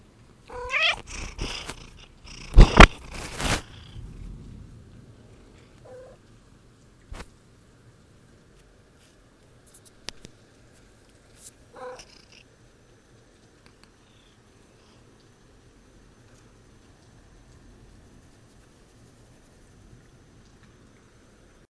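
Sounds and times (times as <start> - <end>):
cat: 0.5 - 4.0, 5.8 - 6.2, 11.7 - 12.5
thunderstorm: 2.6 - 6.9.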